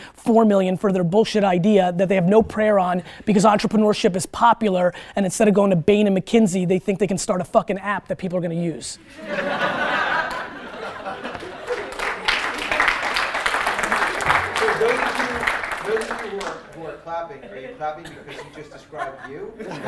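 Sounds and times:
speech: 0:00.3 - 0:10.1, 0:17.8 - 0:19.8
audience laughing: 0:09.1 - 0:16.5, 0:17.2 - 0:19.8
audience clapping: 0:10.1 - 0:17.0.

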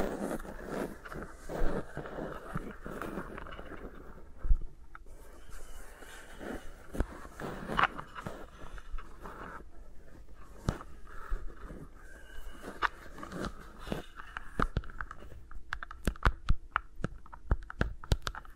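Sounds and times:
fingers rustling on microphones: 0:00.0 - 0:18.5
taps and clicks: 0:13.9 - 0:18.5.

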